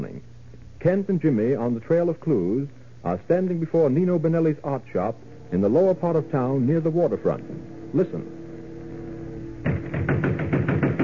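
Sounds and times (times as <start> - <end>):
speech: 0.8 - 8.4
pounding on a wooden door: 9.6 - 11.0.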